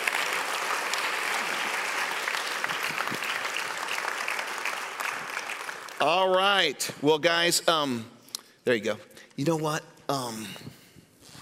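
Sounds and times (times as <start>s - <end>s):
audience applauding: 0.0s - 6.3s
speech: 6.0s - 10.7s.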